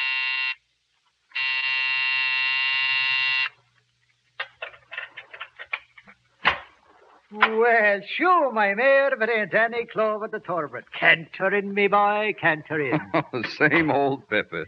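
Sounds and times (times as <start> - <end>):
night buzzer sounding: 0.0 - 0.6, 1.4 - 3.6
scattered clicks and knocks: 4.4 - 6.8
speech: 7.3 - 14.6
laughter: 12.7 - 14.6.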